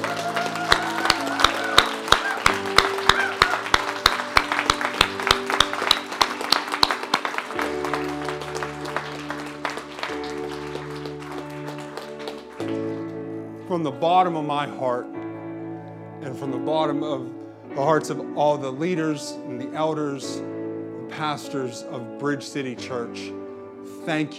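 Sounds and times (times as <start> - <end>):
audience applause: 0.0 - 13.2
speech: 13.8 - 15.2, 16.2 - 20.5, 21.1 - 23.4, 24.0 - 24.3.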